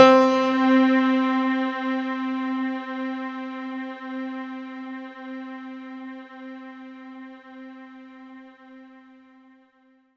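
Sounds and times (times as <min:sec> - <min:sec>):
synth note C4: 0:00.0 - 0:05.4.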